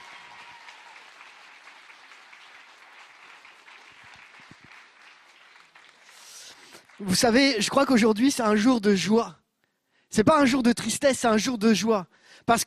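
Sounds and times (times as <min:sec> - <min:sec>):
audience applause: 0:00.0 - 0:07.5
speech: 0:07.0 - 0:09.4, 0:10.1 - 0:12.6.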